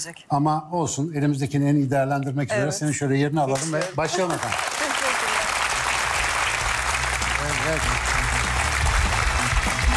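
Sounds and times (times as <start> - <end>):
speech: 0.0 - 4.8, 7.7 - 8.1
audience applause welcoming a guest: 3.8 - 9.9.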